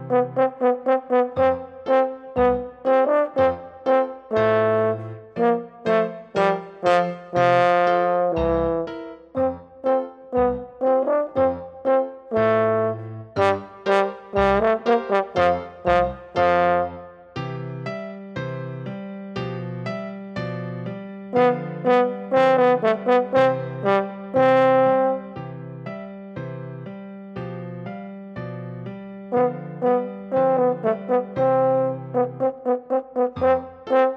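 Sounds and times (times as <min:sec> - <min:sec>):
horn solo: 0:00.0 - 0:17.2, 0:21.4 - 0:25.4, 0:29.3 - 0:34.1.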